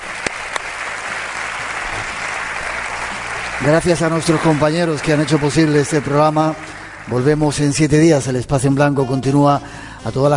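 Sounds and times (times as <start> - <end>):
theatre audience applause: 0.0 - 8.1
speech: 3.6 - 10.3.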